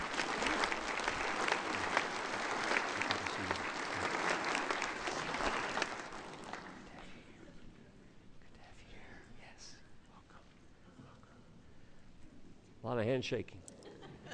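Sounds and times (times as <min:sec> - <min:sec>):
audience round of applause: 0:00.0 - 0:07.1
speech: 0:13.0 - 0:13.7.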